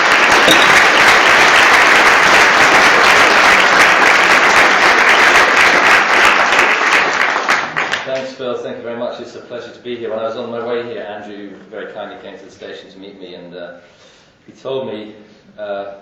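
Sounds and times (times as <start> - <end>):
audience in Glasgow clapping to welcome a professor to the stage: 0.0 - 8.3
speech: 0.5 - 0.8, 9.2 - 16.0.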